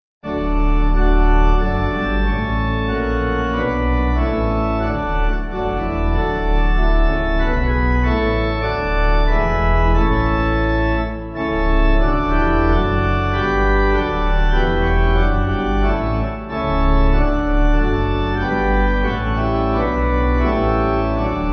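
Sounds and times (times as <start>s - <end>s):
pipe organ: 0.2s - 21.5s.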